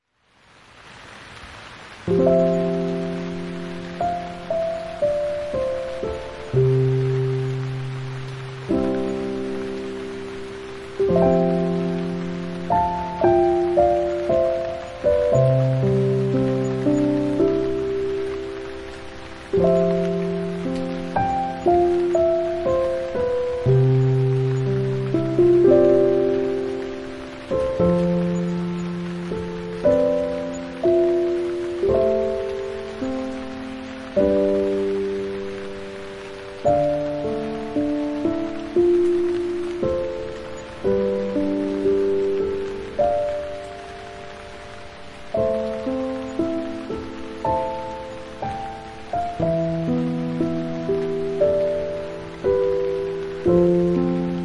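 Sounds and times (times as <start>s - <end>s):
rain: 0.0s - 54.4s
sleeping piano song: 2.0s - 54.4s.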